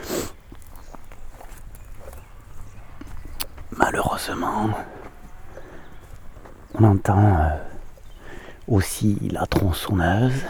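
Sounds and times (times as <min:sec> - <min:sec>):
two deer bounding away: 0:00.0 - 0:10.4
speech: 0:03.8 - 0:05.0, 0:06.8 - 0:07.7, 0:08.7 - 0:10.4.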